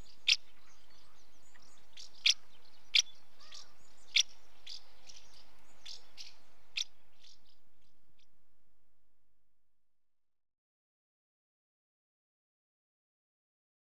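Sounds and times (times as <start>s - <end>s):
female house martin calling at the nest: 0.0s - 7.6s.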